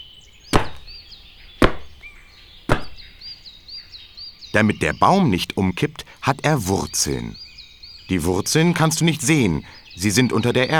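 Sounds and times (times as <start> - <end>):
faint birdsong: 0.0 - 10.7
feet stamping hard on the ground: 0.6 - 1.0, 1.6 - 2.1, 2.7 - 3.2
speech: 4.6 - 7.4, 8.1 - 10.7.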